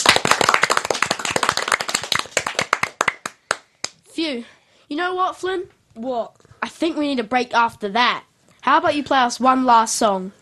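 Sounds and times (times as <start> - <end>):
applause of rapid sharp hand claps: 0.0 - 4.0
speech: 4.2 - 10.4.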